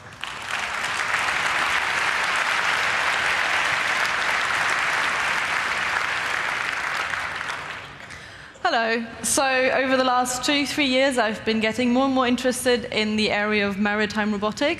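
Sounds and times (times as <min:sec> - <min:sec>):
audience applause: 0:00.0 - 0:08.2
speech: 0:08.7 - 0:14.7.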